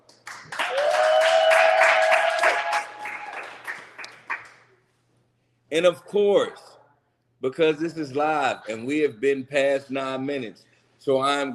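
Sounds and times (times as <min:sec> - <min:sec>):
crowd applauding: 0:00.0 - 0:04.6
cheering: 0:00.5 - 0:03.8
speech: 0:05.7 - 0:06.6, 0:07.4 - 0:11.5.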